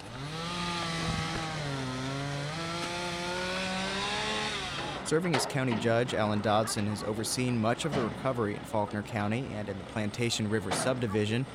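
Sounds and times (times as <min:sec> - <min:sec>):
chainsaws cutting up tree limbs: 0:00.0 - 0:05.1
speech: 0:05.1 - 0:11.5.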